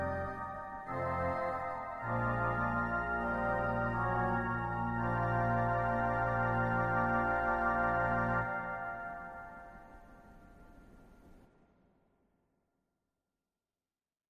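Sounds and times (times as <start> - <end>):
Quintadena Celeste organ stop: 0.0 - 9.6.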